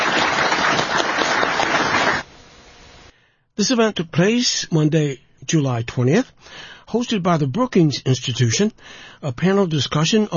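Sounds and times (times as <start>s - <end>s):
audience applause: 0.0s - 2.3s
speech: 3.6s - 10.3s.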